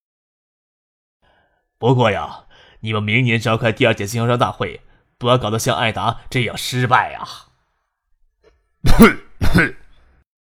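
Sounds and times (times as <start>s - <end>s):
speech: 1.8s - 7.5s, 8.8s - 9.8s
man coughing lightly, voiced by a narrator: 8.8s - 10.1s.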